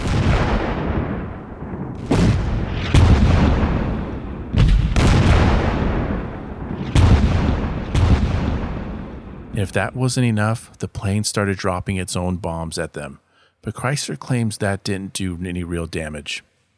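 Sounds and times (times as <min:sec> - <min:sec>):
artillery fire: 0:00.0 - 0:09.6
speech: 0:09.6 - 0:16.5.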